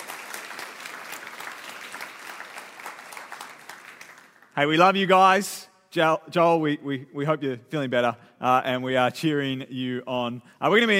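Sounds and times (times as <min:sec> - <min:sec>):
audience applause: 0:00.0 - 0:04.6
speech: 0:04.6 - 0:10.9.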